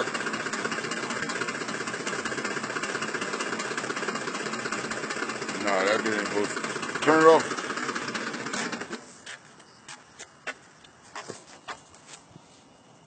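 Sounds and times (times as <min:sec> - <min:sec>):
5.4 litre engine running with oil pressure problems: 0:00.0 - 0:09.1.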